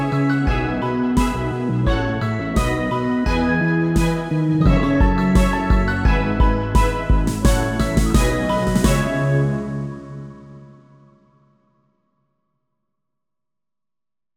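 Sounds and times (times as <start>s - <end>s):
dream town background music: 0.0s - 11.5s.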